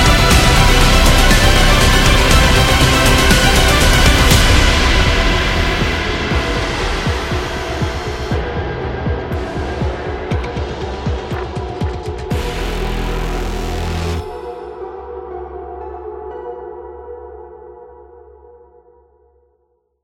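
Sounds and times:
epic cyberpunk music: 0.0s - 14.8s.

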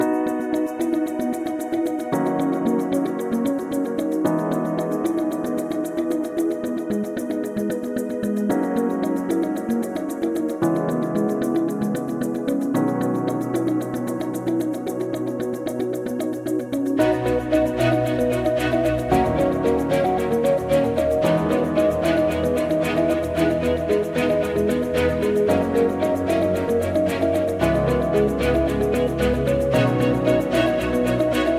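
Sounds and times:
commercial video music: 0.0s - 31.5s.

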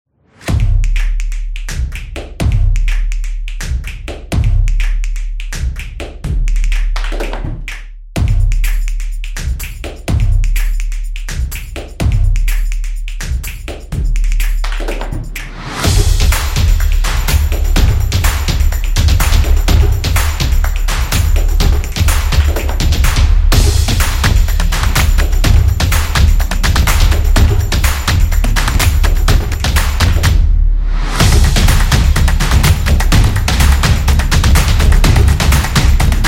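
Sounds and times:
upbeat drum beat: 0.5s - 36.2s.

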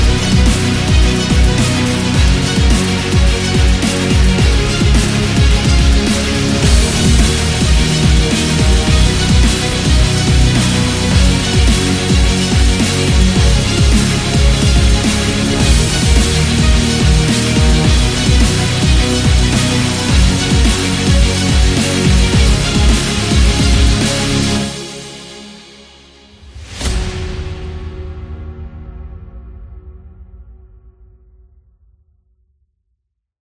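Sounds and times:
epic dubstep music: 0.0s - 25.5s.

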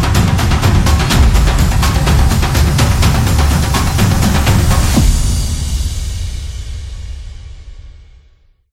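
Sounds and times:
cinematic tribal drums: 0.0s - 8.1s.

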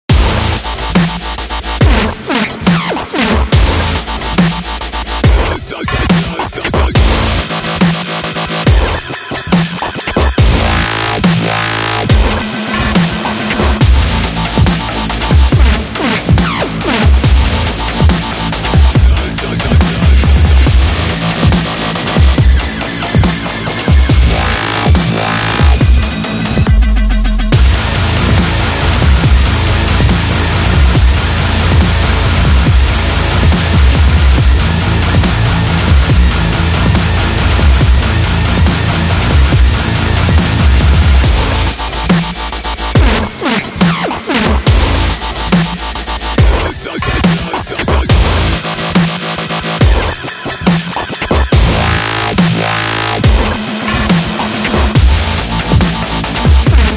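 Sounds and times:
sport dubstep: 0.1s - 56.9s.

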